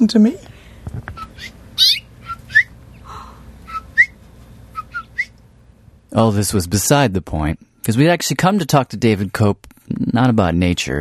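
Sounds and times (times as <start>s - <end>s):
speech: 0.0s - 1.6s, 6.1s - 10.9s
mother bird at her nest chirping: 1.2s - 3.1s.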